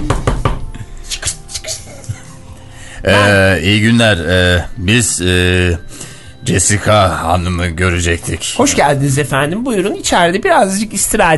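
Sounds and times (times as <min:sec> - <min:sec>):
knocks on a door: 0:00.0 - 0:00.7
speech: 0:03.0 - 0:11.3.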